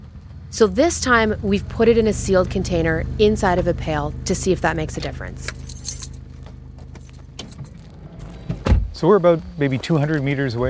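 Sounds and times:
truck engine rumbling: 0:00.0 - 0:10.6
speech: 0:00.5 - 0:05.6, 0:09.0 - 0:10.6
metallic clinks and rattles: 0:05.4 - 0:07.9.

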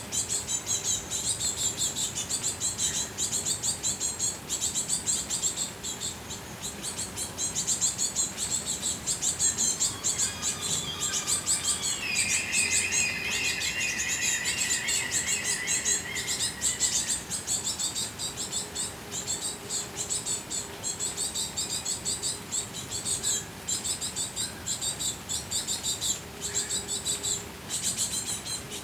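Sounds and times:
insect and bird chirps in a buzzing forest: 0:00.1 - 0:28.8
mid-pitched call: 0:09.2 - 0:17.4.

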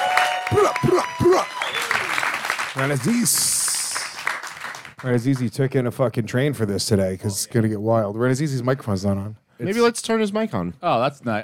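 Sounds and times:
crowd cheering with loud rising-and-falling whoops: 0:00.0 - 0:02.4
crowd applause: 0:00.0 - 0:05.5
shouting: 0:00.2 - 0:02.2
speech: 0:00.5 - 0:01.5, 0:02.8 - 0:03.6, 0:05.0 - 0:11.4.

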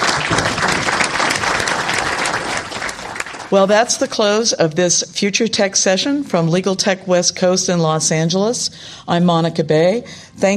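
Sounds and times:
audience clapping: 0:00.0 - 0:04.1
speech: 0:03.5 - 0:10.5.

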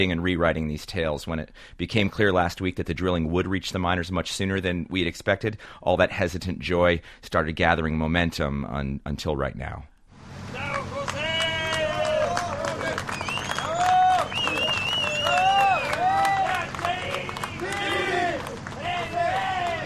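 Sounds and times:
speech: 0:00.0 - 0:09.9
crowd cheering and clapping as rescued miner surfaces: 0:10.4 - 0:19.8
many voices shouting and calling out: 0:10.4 - 0:19.8.

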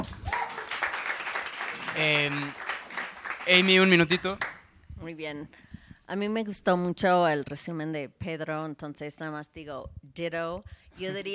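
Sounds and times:
audience applause: 0:00.0 - 0:04.6
brief vocal shout or cheer: 0:00.2 - 0:00.7
speech: 0:02.0 - 0:02.6, 0:03.5 - 0:11.3.

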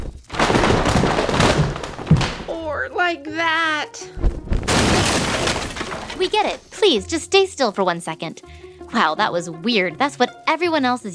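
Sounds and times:
object knocked over: 0:00.0 - 0:02.5, 0:04.2 - 0:06.7
speech: 0:02.8 - 0:04.4, 0:06.1 - 0:11.1.

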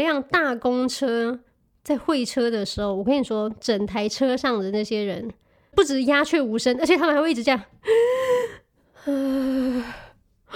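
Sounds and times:
speech: 0:00.0 - 0:10.5
person imitating frightened sharp gasping: 0:07.8 - 0:10.5.

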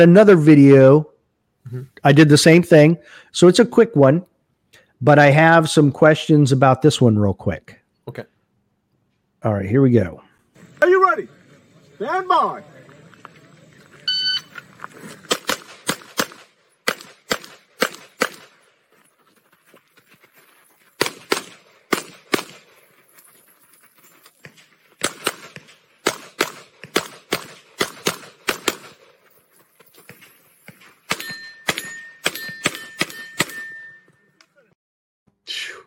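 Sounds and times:
speech: 0:00.0 - 0:01.1, 0:01.7 - 0:04.3, 0:05.0 - 0:08.3, 0:09.4 - 0:10.2, 0:10.8 - 0:11.3, 0:12.0 - 0:12.7
gunshots: 0:15.2 - 0:18.7, 0:21.0 - 0:22.8, 0:24.5 - 0:29.2, 0:30.8 - 0:33.7
steel shooting targets ringing: 0:30.5 - 0:34.4.

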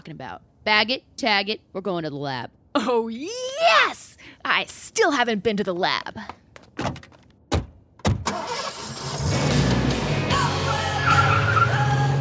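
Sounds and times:
speech: 0:00.1 - 0:07.2
car engine roaring as it races off: 0:08.3 - 0:12.1
tires squealing: 0:10.5 - 0:12.1.

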